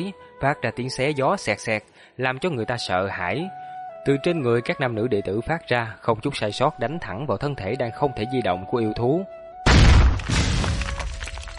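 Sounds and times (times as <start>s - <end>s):
speech: 0.0s - 9.4s
series of explosions: 9.7s - 11.5s.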